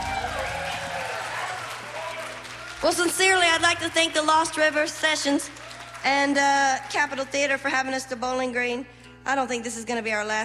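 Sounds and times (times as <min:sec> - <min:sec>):
crowd clapping: 0:00.0 - 0:07.8
speech: 0:02.8 - 0:10.4.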